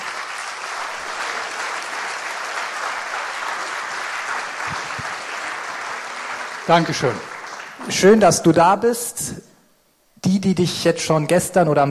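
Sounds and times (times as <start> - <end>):
audience applause welcoming a guest preacher at a church gathering: 0.0 - 8.2
speech: 6.7 - 7.3, 7.9 - 9.5, 10.2 - 11.8.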